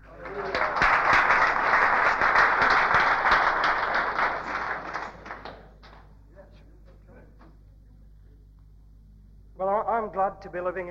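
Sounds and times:
audience clapping: 0:00.0 - 0:06.2
speech: 0:10.4 - 0:10.8.

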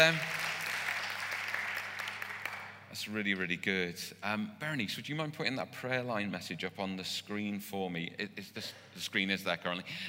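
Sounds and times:
speech: 0:00.0 - 0:00.3, 0:03.0 - 0:10.0
audience clapping: 0:00.0 - 0:02.9.

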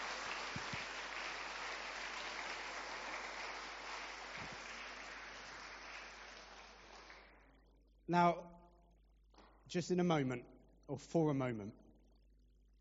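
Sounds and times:
large crowd applauding: 0:00.0 - 0:07.6
speech: 0:08.1 - 0:08.5, 0:09.7 - 0:11.8.

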